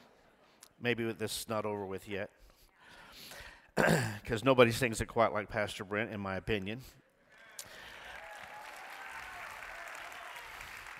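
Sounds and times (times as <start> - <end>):
speech: 0.8 - 2.5, 3.8 - 7.0
audience applause: 7.6 - 10.9.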